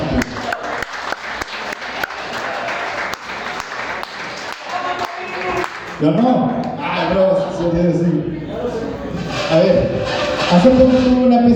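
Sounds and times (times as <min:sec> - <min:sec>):
audience applause: 0:00.0 - 0:06.0
speech: 0:06.0 - 0:08.4, 0:09.5 - 0:11.5.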